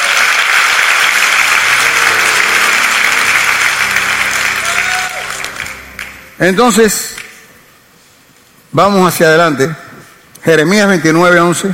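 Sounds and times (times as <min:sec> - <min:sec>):
audience applauding: 0:00.0 - 0:06.6
speech: 0:06.4 - 0:07.1, 0:08.7 - 0:09.8, 0:10.4 - 0:11.7.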